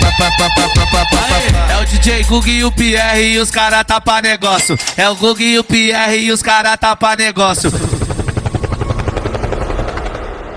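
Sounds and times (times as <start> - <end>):
speech: 0.3 - 8.0
helicopter sound effect in a song: 7.5 - 10.5.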